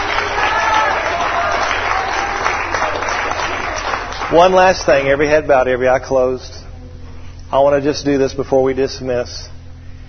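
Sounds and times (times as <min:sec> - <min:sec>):
audience clapping in praise: 0:00.0 - 0:05.1
speech: 0:04.3 - 0:06.6, 0:07.5 - 0:09.6.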